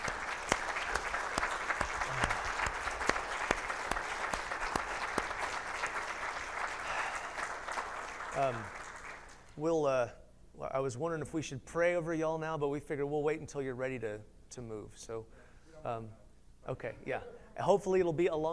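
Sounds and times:
audience applause: 0.0s - 9.4s
speech: 9.6s - 18.5s.

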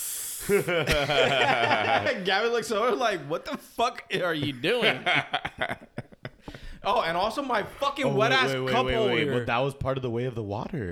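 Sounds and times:
person imitating a breathing-exercise exhale: 0.0s - 0.7s
speech: 0.5s - 6.0s, 6.8s - 10.9s
laughter: 0.5s - 7.2s.

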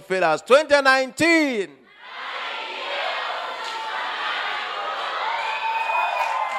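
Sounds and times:
speech: 0.1s - 1.8s
youth crowd screaming and cheering: 2.0s - 6.5s.

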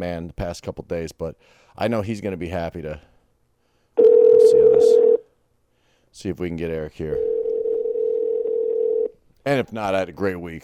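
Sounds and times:
speech: 0.0s - 3.1s, 6.2s - 7.3s, 9.4s - 10.6s
telephone dial tone: 4.0s - 5.2s, 7.2s - 9.1s.

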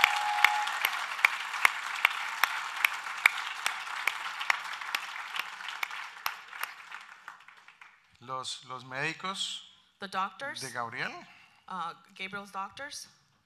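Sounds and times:
audience applause: 0.0s - 8.1s
speech: 8.3s - 13.2s.

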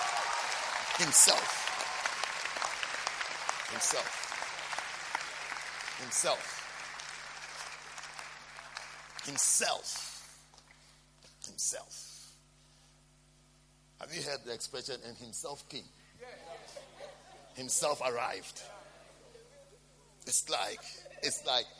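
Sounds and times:
audience clapping: 0.0s - 10.9s
speech: 1.0s - 1.7s, 3.7s - 4.2s, 6.0s - 6.6s, 9.2s - 10.1s, 11.6s - 12.1s, 14.0s - 16.4s, 17.6s - 18.8s, 20.3s - 21.7s.

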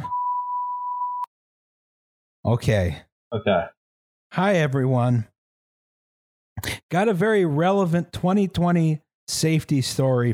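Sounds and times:
censor beep over a name: 0.0s - 1.3s
speech: 2.5s - 5.3s, 6.6s - 10.3s.

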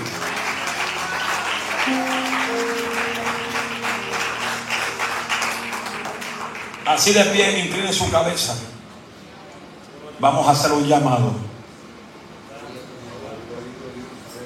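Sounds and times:
audience applauding loudly: 0.0s - 8.4s
speech: 6.9s - 8.7s, 10.2s - 11.5s.

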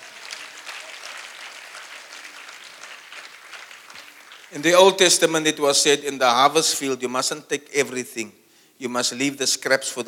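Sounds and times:
audience applause: 0.0s - 5.1s
speech: 4.5s - 10.0s.

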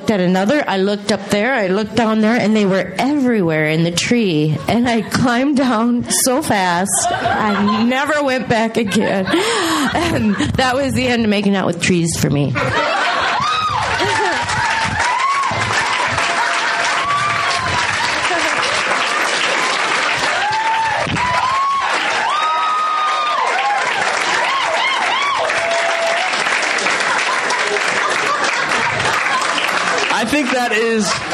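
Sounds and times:
speech: 0.1s - 13.1s, 30.7s - 31.3s
laughter: 5.9s - 10.9s, 12.6s - 20.6s, 23.5s - 31.3s
loud audience applause: 12.7s - 31.3s.

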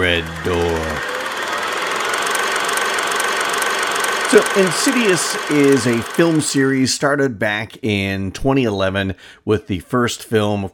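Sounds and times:
speech: 0.0s - 1.1s, 4.3s - 10.7s
fast clattering rattle: 0.0s - 6.7s
kinetoscope film projector whirring: 0.0s - 6.9s.

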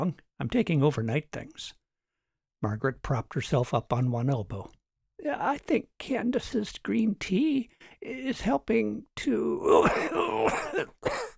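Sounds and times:
speech: 0.0s - 1.8s, 2.6s - 11.3s
coughing fit: 9.6s - 11.3s.

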